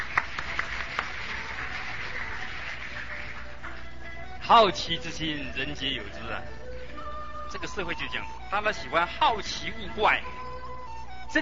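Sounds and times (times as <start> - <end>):
audience applause: 0.0 - 4.0
speech: 4.5 - 6.6, 7.5 - 10.5, 11.3 - 11.4.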